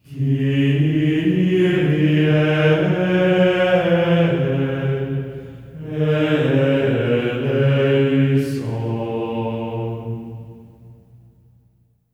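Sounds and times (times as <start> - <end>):
voices singing Kyrie on D sharp 4: 0.0 - 11.0.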